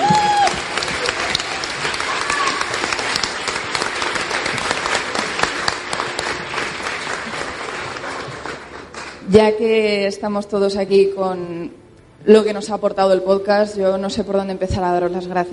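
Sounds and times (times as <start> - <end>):
audience applause: 0.0 - 9.2
speech: 9.3 - 15.5.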